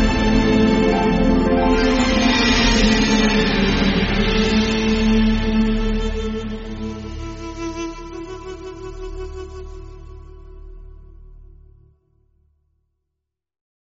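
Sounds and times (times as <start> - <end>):
instrumental music: 0.0 - 10.4.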